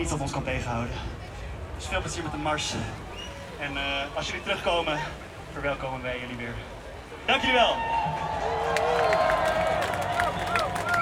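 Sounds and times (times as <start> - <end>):
speech: 0.0 - 1.2, 1.8 - 8.8
voices calling out: 1.0 - 10.9
crowd clapping and cheering at a street march: 7.8 - 10.9.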